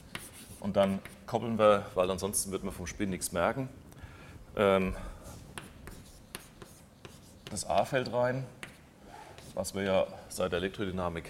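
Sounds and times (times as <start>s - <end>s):
chalk or marker strokes on a board during a physics lecture: 0.0s - 1.3s, 5.2s - 9.8s
speech: 0.6s - 3.8s, 4.6s - 5.1s, 7.6s - 8.6s, 9.6s - 11.2s.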